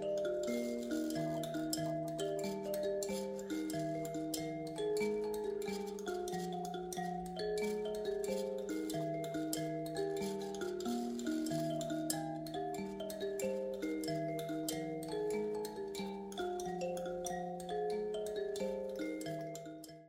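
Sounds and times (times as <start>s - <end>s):
mbira playing: 0.0s - 20.0s.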